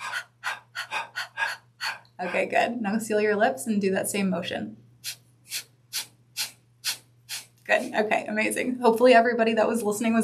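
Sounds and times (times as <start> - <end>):
person panting like a dog: 0.0 - 2.4, 5.0 - 7.5
speech: 2.2 - 4.8, 7.7 - 10.2.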